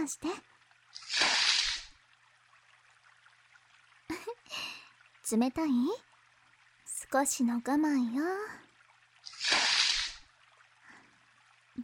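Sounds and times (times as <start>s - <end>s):
speech: 0.0s - 1.3s, 5.3s - 6.1s, 7.1s - 8.7s
faint water trickle: 0.0s - 11.8s
water splashing while washing someone's body: 0.6s - 5.2s, 8.8s - 11.8s.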